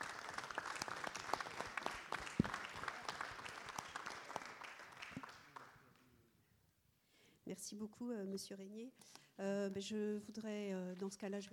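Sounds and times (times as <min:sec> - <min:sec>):
audience applause: 0:00.0 - 0:05.8
speech: 0:07.6 - 0:11.5.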